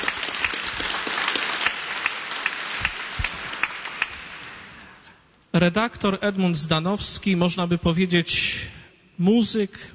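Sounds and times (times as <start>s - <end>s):
audience applause: 0.0s - 4.8s
speech: 5.6s - 9.9s.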